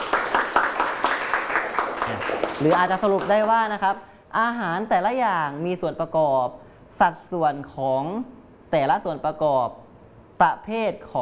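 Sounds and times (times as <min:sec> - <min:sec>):
students in a classroom clapping for a classmate: 0:00.0 - 0:03.7
speech: 0:02.2 - 0:09.8, 0:10.4 - 0:11.2.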